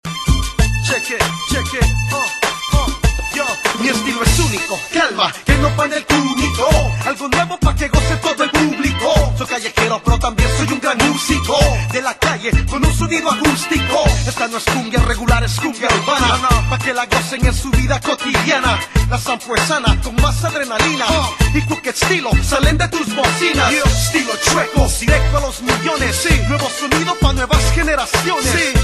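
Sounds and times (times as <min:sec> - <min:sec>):
cumbia ringtone: 0:00.0 - 0:28.8.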